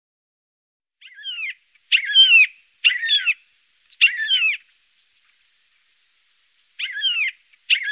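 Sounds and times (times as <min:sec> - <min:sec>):
Siberian jay calling: 0:01.0 - 0:04.8, 0:06.6 - 0:07.9.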